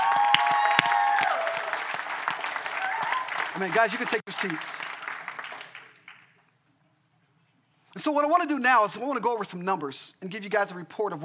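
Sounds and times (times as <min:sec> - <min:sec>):
audience round of applause: 0:00.0 - 0:06.3
speech: 0:03.6 - 0:05.0, 0:08.0 - 0:11.2.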